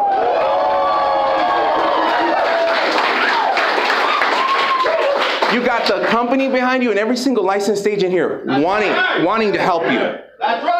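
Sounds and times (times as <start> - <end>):
whoops and shouted voices: 0.0 - 5.2
large crowd applause: 0.0 - 6.4
speech: 5.5 - 10.7.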